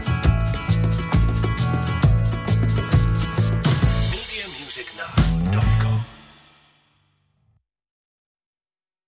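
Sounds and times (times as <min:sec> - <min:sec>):
old Irish tavern background music: 0:00.0 - 0:06.8.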